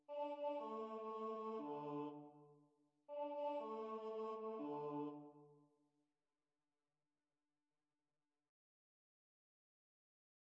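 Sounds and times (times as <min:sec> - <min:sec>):
bass choir singing: 0:00.1 - 0:02.4, 0:03.1 - 0:05.4.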